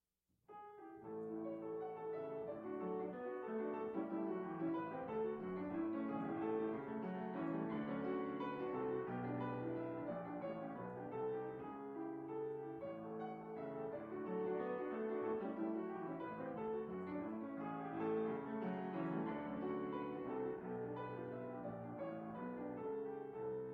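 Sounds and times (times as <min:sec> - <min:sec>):
piano: 0:00.5 - 0:23.7.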